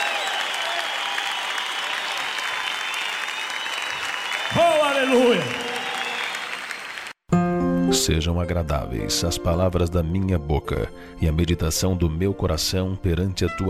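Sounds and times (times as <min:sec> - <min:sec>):
audience applauding: 0:00.0 - 0:07.2
speech: 0:04.5 - 0:05.6, 0:07.9 - 0:13.6.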